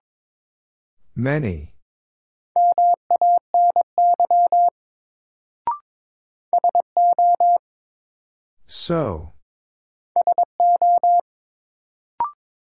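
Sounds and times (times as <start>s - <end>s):
speech: 1.2s - 1.7s, 8.7s - 9.4s
Morse code beeps: 2.6s - 4.7s, 6.6s - 7.6s, 10.2s - 11.2s.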